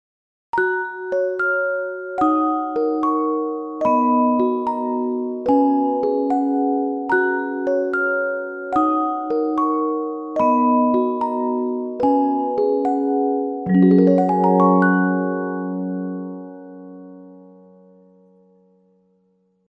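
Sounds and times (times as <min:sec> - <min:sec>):
chime: 0:00.6 - 0:18.8.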